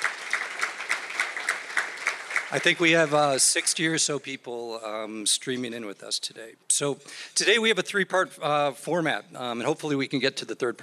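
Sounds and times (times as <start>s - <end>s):
group applauding: 0.0s - 4.0s
sharp rhythmic clap: 0.0s - 4.0s
speech: 2.5s - 10.8s.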